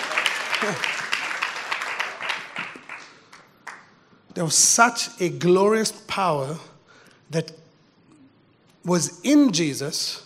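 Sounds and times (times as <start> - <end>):
audience clapping: 0.0 - 4.0
speech: 0.6 - 1.0, 4.4 - 6.7, 7.3 - 7.6, 8.8 - 10.2.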